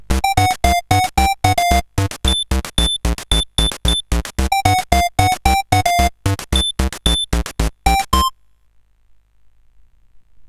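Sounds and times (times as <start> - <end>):
SID chiptune music on a CSG8580R5 chip: 0.0 - 8.3.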